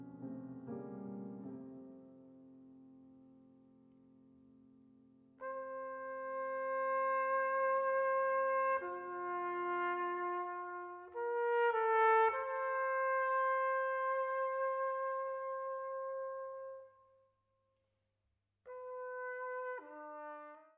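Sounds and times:
piano: 0.0 - 17.4, 18.6 - 20.7
trumpet: 5.4 - 17.2, 18.6 - 20.7.

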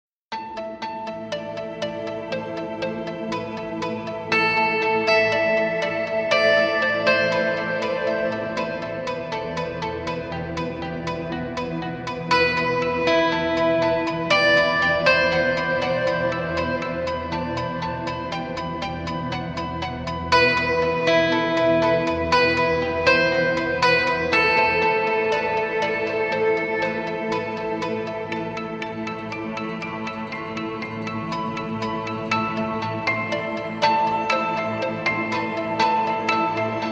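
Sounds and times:
spheric guitar: 0.3 - 36.9.

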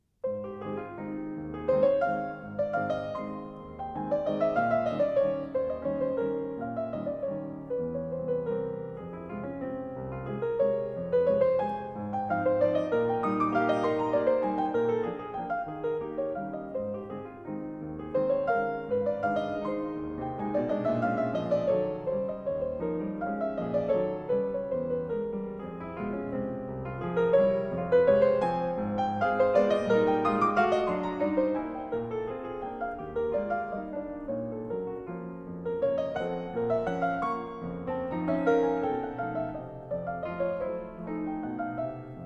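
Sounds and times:
waltz in A-flat major: 0.8 - 42.2.

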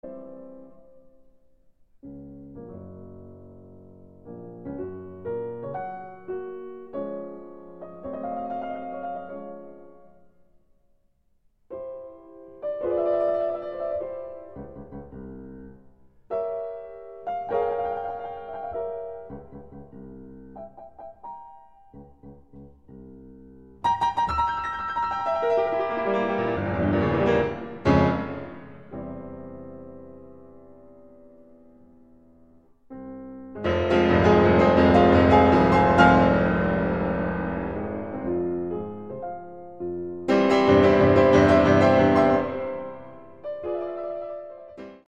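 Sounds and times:
piano sonata in F minor: 0.0 - 45.0.

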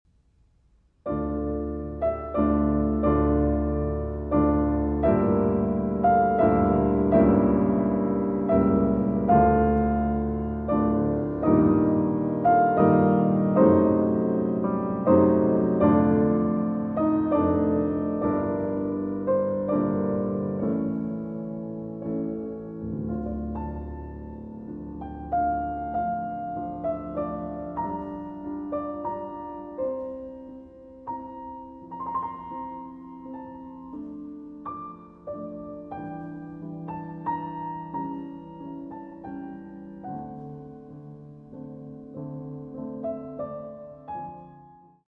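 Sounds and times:
baroque concerto movement in D minor: 1.1 - 44.8.

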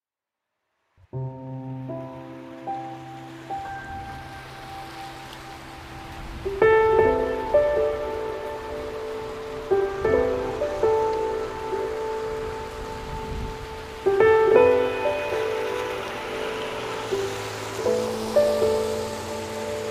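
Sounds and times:
rain: 0.8 - 19.9
piano: 1.0 - 19.9.

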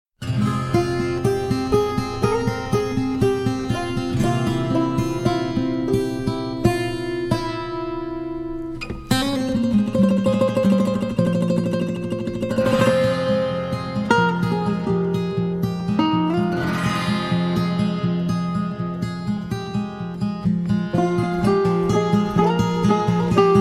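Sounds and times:
guitar: 0.2 - 23.6.

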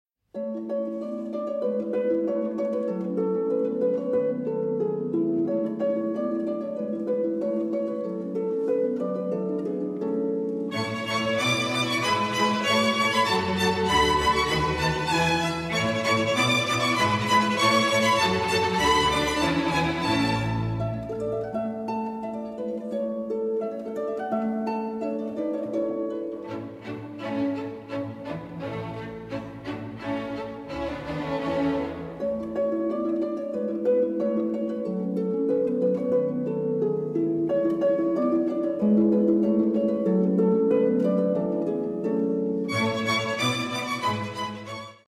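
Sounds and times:
harp concerto rondo allegretto: 0.3 - 45.0.

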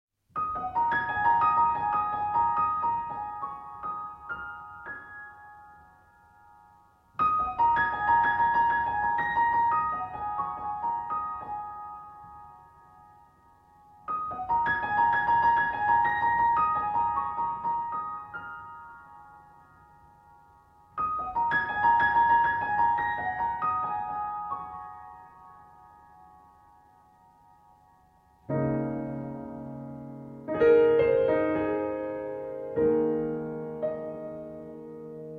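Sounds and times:
piano: 0.2 - 35.3.

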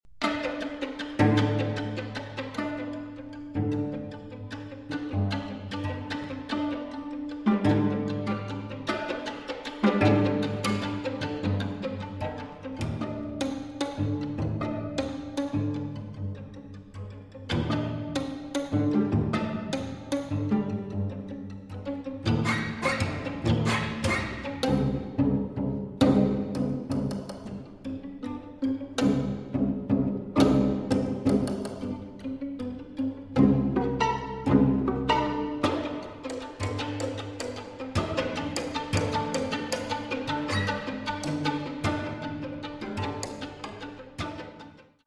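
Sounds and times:
string quartet playing risoluto: 0.2 - 45.0.

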